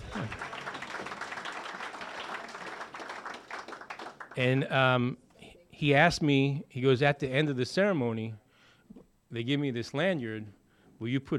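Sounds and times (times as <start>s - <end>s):
audience clapping: 0.0s - 4.6s
speech: 4.4s - 5.2s, 5.8s - 8.4s, 9.3s - 11.3s.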